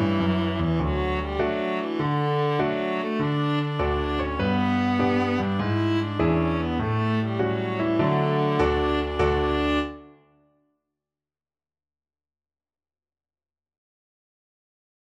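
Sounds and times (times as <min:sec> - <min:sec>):
viola: 0:00.0 - 0:10.2.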